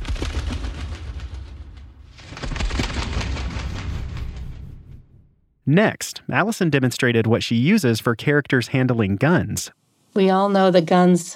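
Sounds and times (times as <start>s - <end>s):
Foley moth wings made with toilet paper fluttering: 0.0s - 4.9s
heavy low rumble: 0.0s - 5.4s
speech: 5.7s - 11.3s.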